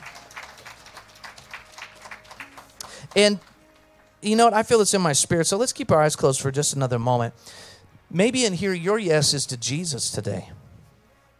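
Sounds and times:
audience clapping along in a steady rhythm: 0:00.0 - 0:04.2
speech: 0:03.1 - 0:03.5, 0:04.2 - 0:10.6.

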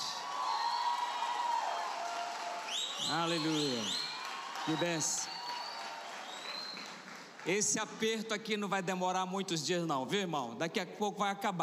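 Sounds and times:
loud audience applause: 0:00.0 - 0:08.1
speech: 0:03.1 - 0:04.0, 0:04.7 - 0:05.4, 0:07.4 - 0:11.6.

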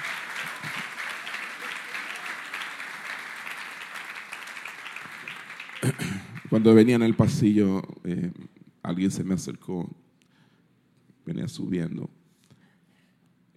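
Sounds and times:
audience applause: 0:00.0 - 0:07.3
speech: 0:05.8 - 0:10.0, 0:11.3 - 0:12.1.

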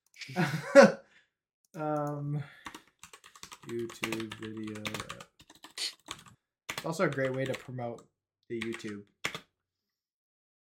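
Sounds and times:
speech: 0:00.3 - 0:01.0, 0:03.9 - 0:05.2, 0:06.9 - 0:09.2
keyboard clicks while jotting a note: 0:01.7 - 0:09.5.

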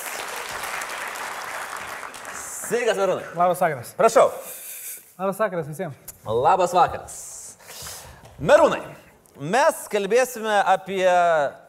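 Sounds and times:
audience applause welcoming a guest onto an evening show: 0:00.0 - 0:03.1
speech: 0:02.7 - 0:04.6, 0:05.2 - 0:07.2, 0:08.4 - 0:11.6.

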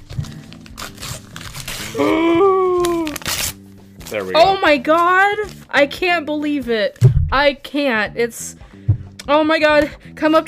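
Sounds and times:
paper being ripped: 0:00.0 - 0:05.6
speech: 0:01.9 - 0:02.2, 0:04.1 - 0:08.6, 0:09.3 - 0:10.4.

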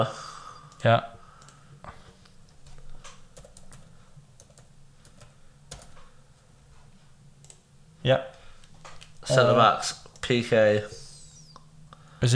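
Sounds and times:
speech: 0:00.0 - 0:00.2, 0:00.8 - 0:01.1, 0:08.0 - 0:08.4, 0:09.3 - 0:11.0, 0:12.2 - 0:12.3
low steady hum: 0:00.0 - 0:12.3
typing on a computer keyboard: 0:02.5 - 0:06.1.

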